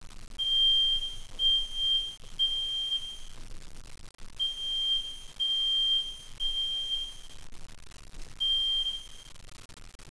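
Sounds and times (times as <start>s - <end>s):
fire alarm: 0.4s - 3.3s, 4.4s - 7.3s, 8.4s - 9.3s.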